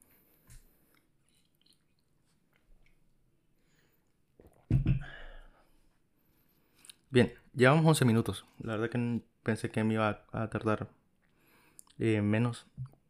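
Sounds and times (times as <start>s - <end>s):
person drinking a sip of water: 0.8s - 3.0s
speech: 7.1s - 11.0s, 12.0s - 13.0s.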